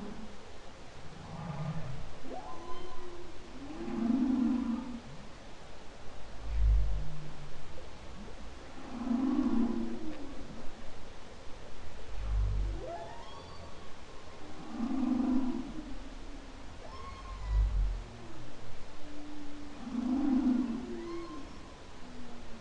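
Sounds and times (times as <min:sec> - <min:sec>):
faint hiss: 0:00.0 - 0:22.6
humpback whale song: 0:01.2 - 0:05.2, 0:08.6 - 0:10.6, 0:12.1 - 0:22.6.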